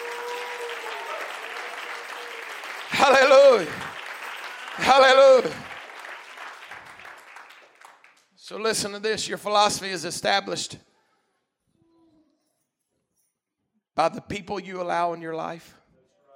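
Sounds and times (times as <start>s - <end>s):
audience clapping: 0.0s - 9.0s
speech: 3.0s - 3.8s, 4.8s - 5.6s, 8.5s - 10.9s, 14.0s - 15.8s.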